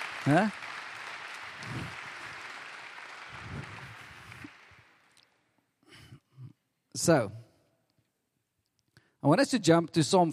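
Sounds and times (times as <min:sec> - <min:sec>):
audience applause: 0:00.0 - 0:05.2
speech: 0:00.2 - 0:00.6, 0:07.0 - 0:07.4, 0:09.2 - 0:10.3.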